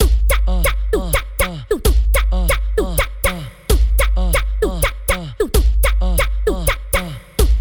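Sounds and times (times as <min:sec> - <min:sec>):
music beat: 0:00.0 - 0:07.5.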